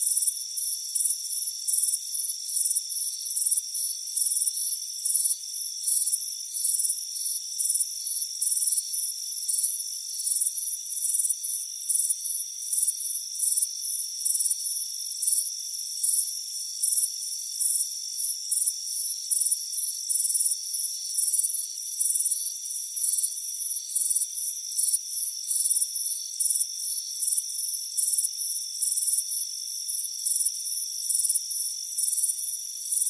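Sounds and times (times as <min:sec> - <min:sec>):
crickets chirping: 0:00.0 - 0:33.0.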